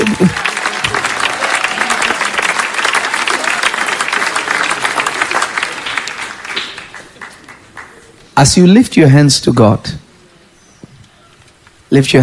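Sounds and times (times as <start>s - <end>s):
audience clapping hands: 0.0s - 8.1s
speech: 0.2s - 0.5s, 8.4s - 10.0s, 11.9s - 12.2s.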